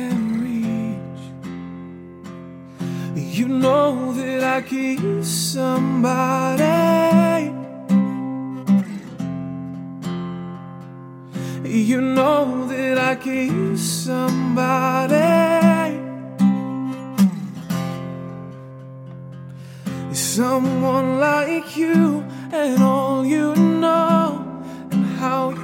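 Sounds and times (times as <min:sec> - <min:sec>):
vocalist singing: 0:00.0 - 0:01.4, 0:03.1 - 0:08.2, 0:11.6 - 0:16.4, 0:20.1 - 0:25.6
guitar: 0:00.0 - 0:25.6.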